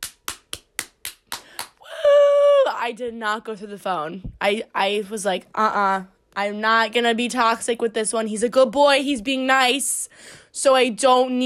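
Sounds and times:
hand clapping applause: 0:00.0 - 0:01.8
speech: 0:02.8 - 0:11.4.

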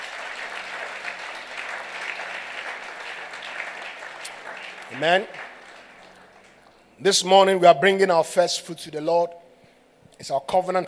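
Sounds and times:
audience hand clapping: 0:00.0 - 0:06.8
speech: 0:04.9 - 0:05.5, 0:07.0 - 0:09.4, 0:10.2 - 0:10.8.

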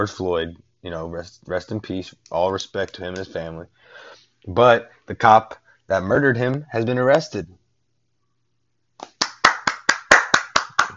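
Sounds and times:
speech: 0:00.0 - 0:07.6
hand clap: 0:09.0 - 0:10.9.

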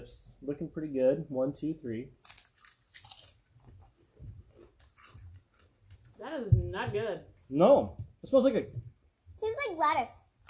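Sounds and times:
speech: 0:00.0 - 0:02.3, 0:06.2 - 0:10.4
biting and chewing taco-flavoured Lay's potato chips: 0:02.2 - 0:06.2.

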